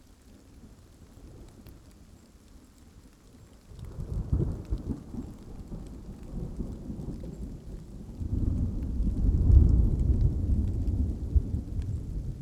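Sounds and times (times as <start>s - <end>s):
rain: 0.0s - 12.4s
thunder: 6.4s - 12.4s.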